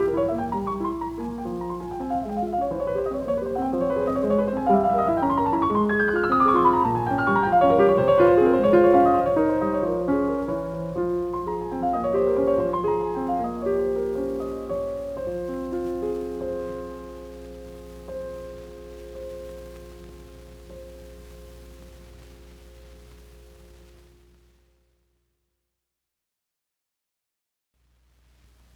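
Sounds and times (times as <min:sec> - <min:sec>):
presto etude in F minor: 0:00.0 - 0:16.9.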